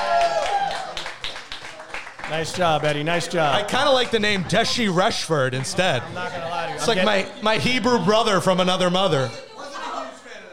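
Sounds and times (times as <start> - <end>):
round of applause: 0.0 - 6.2
speech: 2.3 - 9.4.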